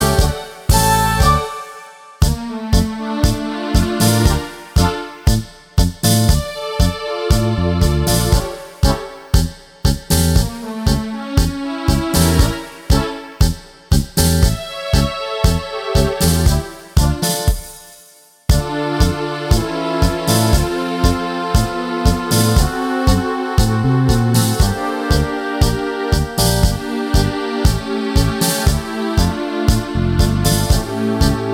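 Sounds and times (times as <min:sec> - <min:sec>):
tango music: 0:00.0 - 0:09.5, 0:10.1 - 0:13.5, 0:14.2 - 0:17.5, 0:18.5 - 0:31.5.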